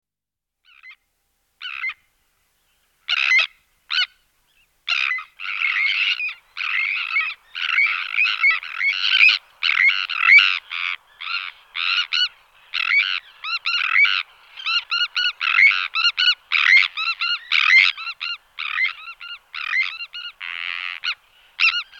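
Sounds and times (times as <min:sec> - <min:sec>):
Sandwich terns Sterna sandvicensis calling: 0:04.9 - 0:21.9.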